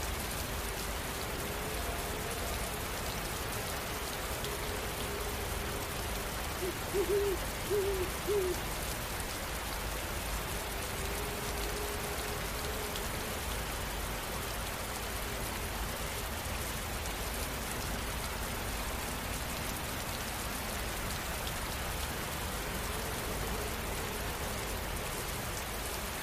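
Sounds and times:
constant rain: 0.0s - 26.2s
owl hooting: 6.6s - 8.6s.

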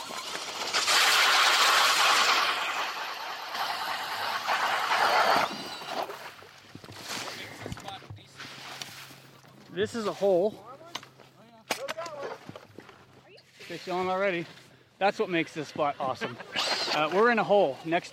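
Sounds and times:
electric ice auger drilling through ice: 0.0s - 7.6s, 15.4s - 18.1s
speech: 9.8s - 10.7s, 13.7s - 18.1s.

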